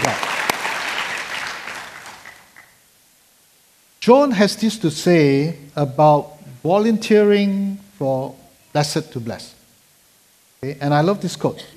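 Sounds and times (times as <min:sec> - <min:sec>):
audience clapping: 0:00.0 - 0:02.8
speech: 0:04.0 - 0:09.6, 0:10.6 - 0:11.7.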